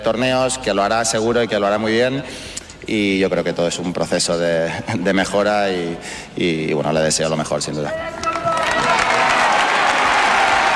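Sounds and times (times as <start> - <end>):
speech: 0.0 - 8.4
audience applause: 8.2 - 10.7.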